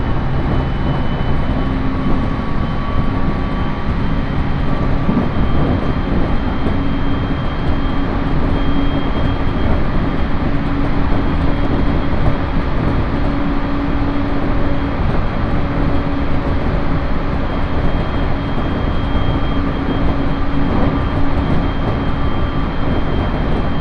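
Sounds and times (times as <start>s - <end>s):
Uetsu Main Line train carriage running rumble: 0.0s - 23.7s
faint humming tones: 0.0s - 23.7s.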